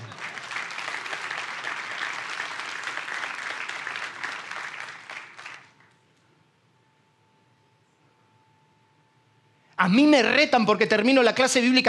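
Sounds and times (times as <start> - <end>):
audience applause: 0.0 - 5.9
speech: 9.8 - 11.8.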